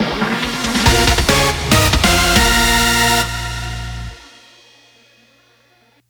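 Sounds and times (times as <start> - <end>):
victory jingle: 0.4 - 5.0.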